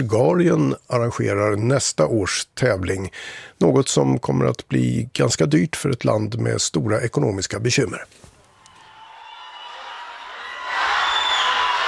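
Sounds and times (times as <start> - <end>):
speech: 0.0 - 8.3
crowd of fans cheering and applauding: 8.6 - 11.8.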